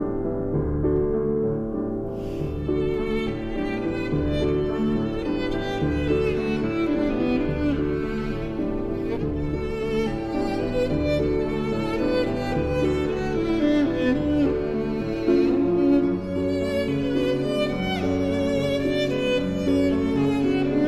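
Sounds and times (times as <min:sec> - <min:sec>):
piano: 0:00.0 - 0:20.8
violin: 0:00.0 - 0:20.8.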